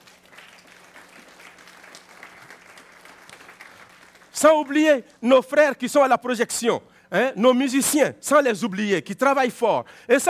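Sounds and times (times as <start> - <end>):
church congregation clapping thanking the kitchen team: 0.0 - 5.4
speech: 4.4 - 10.2.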